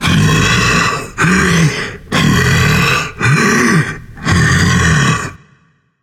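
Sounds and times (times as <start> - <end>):
non-verbal breath: 0.0 - 4.4.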